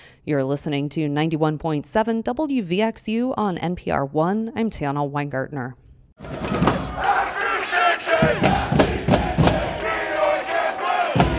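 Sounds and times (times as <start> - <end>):
speech: 0.2 - 6.5
huge stadium crowd cheering: 6.2 - 11.3
sharp claps: 6.6 - 11.3.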